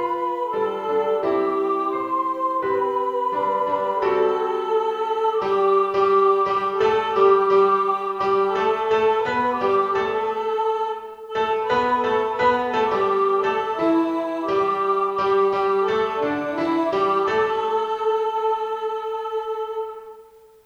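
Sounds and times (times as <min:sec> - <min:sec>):
soprano choir singing: 0:00.0 - 0:20.6.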